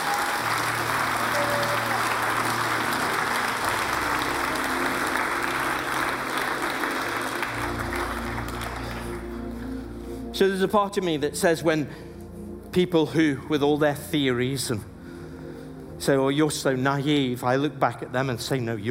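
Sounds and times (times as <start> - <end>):
audience applause: 0.0 - 9.7
speech: 10.4 - 12.1, 12.7 - 14.9, 16.0 - 18.8.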